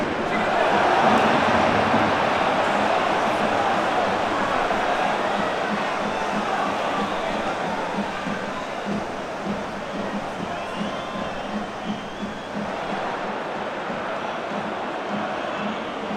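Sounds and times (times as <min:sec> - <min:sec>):
stadium crowd cheering: 0:00.0 - 0:16.1.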